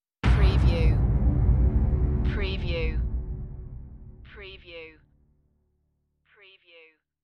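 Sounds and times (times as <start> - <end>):
trailer deep string impact hit with afterglow: 0.2 - 4.5.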